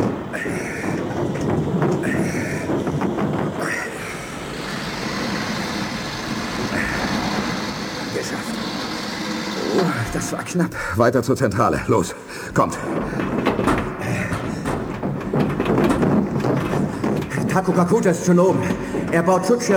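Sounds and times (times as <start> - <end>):
spaceship airlock closing and ramp retracting, science-fiction radio drama effect: 0.0 - 19.7
speech: 10.3 - 13.4, 17.6 - 19.7.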